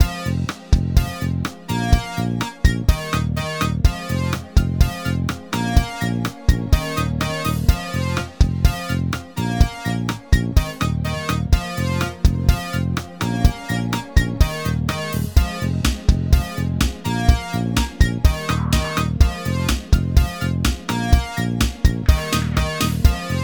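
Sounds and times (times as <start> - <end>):
robotic disco MIDI music: 0.0 - 23.4.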